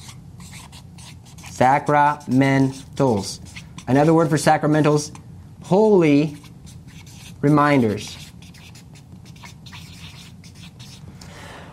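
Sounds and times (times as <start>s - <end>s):
writing the word on a board: 0.0s - 4.4s, 6.2s - 11.0s
speech: 1.6s - 6.4s, 7.4s - 8.2s.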